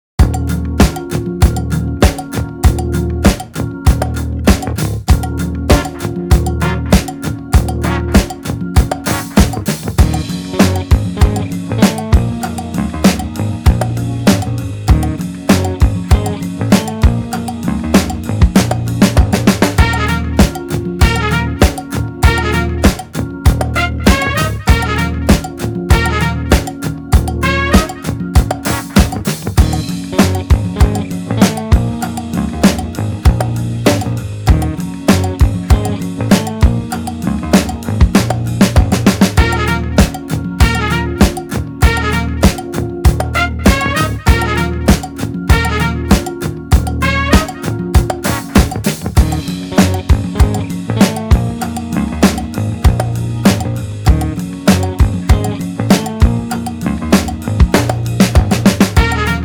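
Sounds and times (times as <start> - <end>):
soundtrack music: 0.2 - 59.4.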